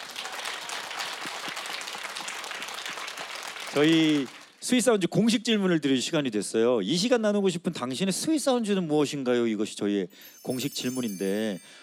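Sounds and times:
audience applause: 0.0s - 4.5s
speech: 3.7s - 11.8s.

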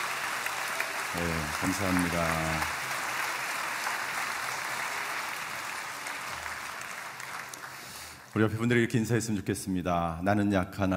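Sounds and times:
audience applause: 0.0s - 8.5s
speech: 1.1s - 2.8s, 8.4s - 10.9s.

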